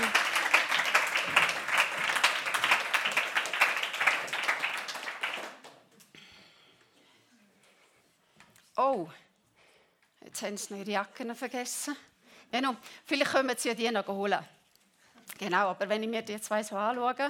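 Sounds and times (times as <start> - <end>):
audience applause: 0.0 - 5.9
speech: 8.8 - 9.3, 10.4 - 14.6, 15.4 - 17.2.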